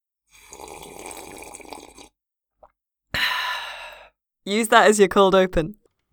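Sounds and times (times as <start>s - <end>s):
slurping a cup of tea: 0.3s - 2.2s
speech: 4.5s - 5.8s.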